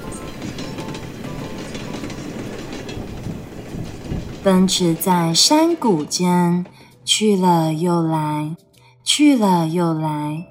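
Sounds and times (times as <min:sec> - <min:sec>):
train wheels rumbling on rails: 0:00.0 - 0:08.3
speech: 0:04.4 - 0:10.4.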